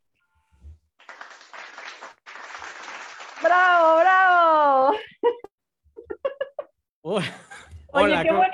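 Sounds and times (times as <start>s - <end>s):
audience applause: 1.0s - 4.2s
speech: 3.4s - 5.0s, 7.1s - 7.4s, 8.0s - 8.5s
laughter: 4.8s - 7.9s.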